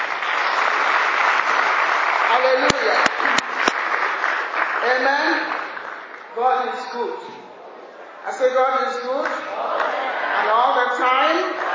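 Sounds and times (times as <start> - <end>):
audience clapping for the choir: 0.0 - 6.4, 9.2 - 10.1, 11.4 - 11.7
speech: 4.8 - 5.5, 6.4 - 7.4, 8.3 - 9.8, 10.4 - 11.6.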